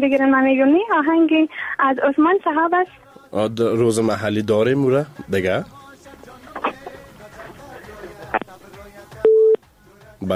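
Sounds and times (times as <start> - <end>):
speech: 0.0 - 5.8
telephone tone after a caller's line is cut off: 9.2 - 9.6.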